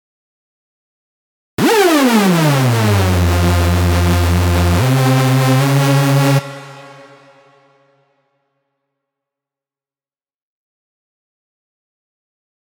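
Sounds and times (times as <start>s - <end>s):
hard techno hoover synth loops in F minor: 1.6s - 7.4s.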